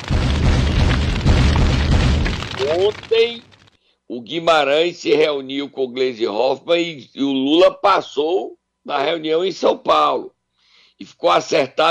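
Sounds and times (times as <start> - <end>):
bomb explosion boom effect: 0.0 - 3.6
speech: 2.8 - 3.5, 4.1 - 10.4, 11.0 - 11.8.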